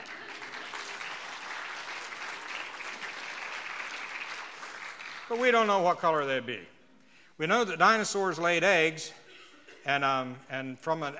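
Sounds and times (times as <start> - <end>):
audience applauding a guest speaker's presentation: 0.0 - 6.2
speech: 5.3 - 6.7, 7.4 - 9.2, 9.8 - 11.1.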